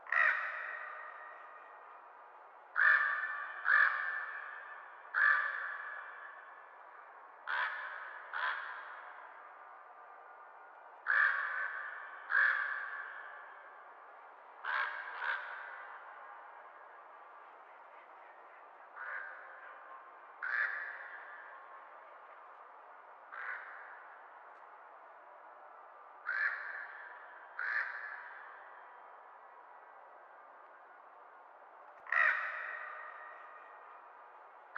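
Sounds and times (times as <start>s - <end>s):
crows cawing: 0.0s - 2.0s, 2.7s - 6.8s, 7.4s - 9.5s, 11.0s - 13.9s, 14.6s - 16.6s, 18.9s - 19.8s, 20.4s - 21.9s, 23.3s - 24.3s, 26.2s - 29.1s, 32.0s - 34.0s.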